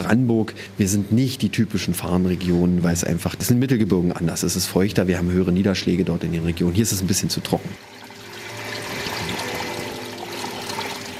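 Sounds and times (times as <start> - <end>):
speech: 0.1 - 8.0
water gurgling and rushing in a tropical greenhouse: 7.8 - 11.1.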